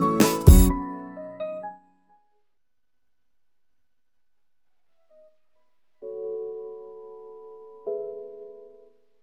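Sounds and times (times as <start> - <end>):
calm piano: 0.0 - 2.4, 4.9 - 9.2.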